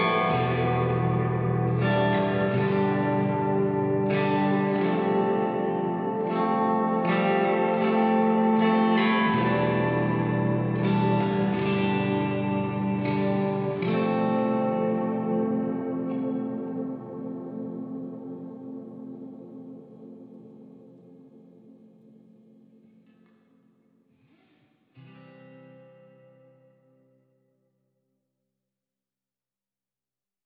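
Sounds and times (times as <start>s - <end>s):
ambient music mix: 0.0s - 23.2s.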